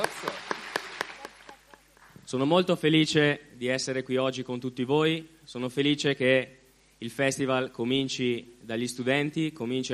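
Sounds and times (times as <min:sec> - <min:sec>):
students applauding: 0:00.0 - 0:01.8
speech: 0:02.3 - 0:09.9.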